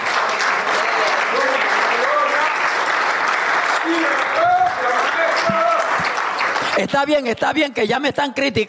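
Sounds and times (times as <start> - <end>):
audience applause: 0.0 - 7.7
speech: 6.8 - 8.6.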